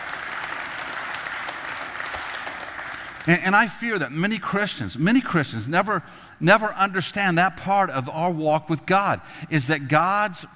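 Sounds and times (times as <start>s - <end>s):
audience clapping hands: 0.0s - 3.6s
speech: 3.2s - 10.5s.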